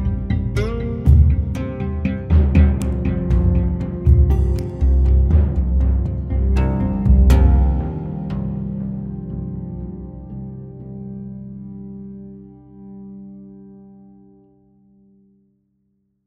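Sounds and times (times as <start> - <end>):
oud: 0.0 - 10.9.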